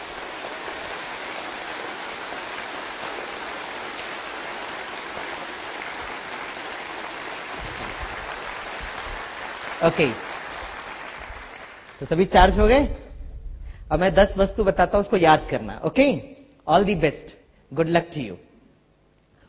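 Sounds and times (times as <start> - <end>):
audience clapping: 0.0 - 12.6
speech: 9.8 - 10.3, 12.0 - 13.0, 13.9 - 18.5.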